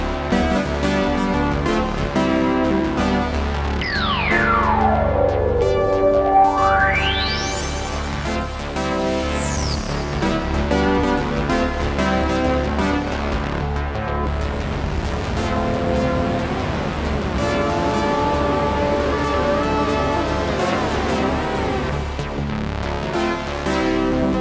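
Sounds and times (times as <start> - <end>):
brassy analog synthesizer: 0.2 - 24.4.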